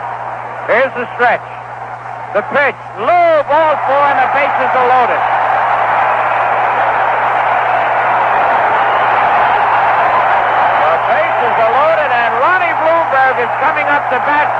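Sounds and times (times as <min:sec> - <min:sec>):
baseball stadium crowd roaring: 0:00.0 - 0:01.0, 0:03.0 - 0:14.5
speech: 0:00.8 - 0:01.6, 0:02.3 - 0:05.4, 0:13.4 - 0:14.5.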